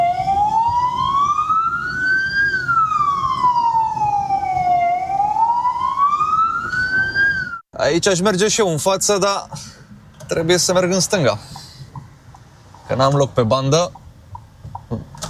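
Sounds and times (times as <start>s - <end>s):
ambulance or police siren in an intersection: 0.0s - 7.6s
speech: 7.9s - 9.7s, 10.3s - 11.5s, 12.9s - 14.0s.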